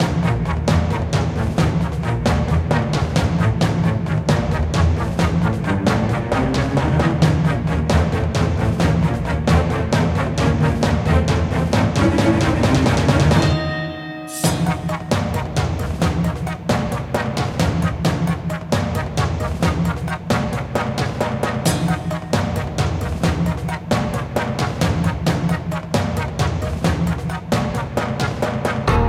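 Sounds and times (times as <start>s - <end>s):
emotional boss fight music: 0.0s - 29.0s.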